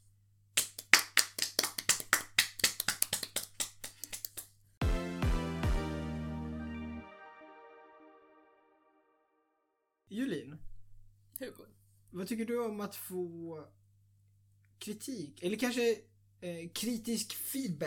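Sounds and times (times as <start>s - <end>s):
hand claps: 0.6s - 4.5s
loud sustained musical chords: 4.8s - 9.7s
speech: 10.2s - 10.7s, 12.2s - 13.8s, 14.8s - 17.8s.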